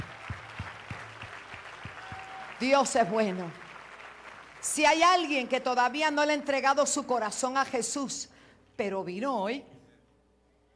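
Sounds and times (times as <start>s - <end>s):
audience rhythmic clapping: 0.0s - 4.8s
speech: 2.6s - 3.6s, 4.8s - 9.7s.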